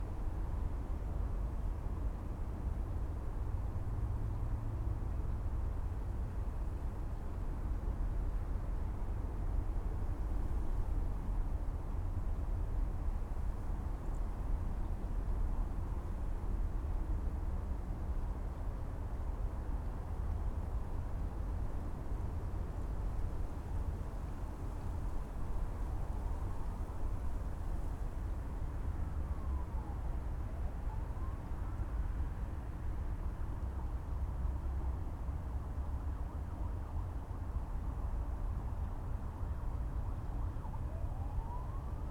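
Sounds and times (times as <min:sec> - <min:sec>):
windy city night ambience: 0:00.0 - 0:42.0.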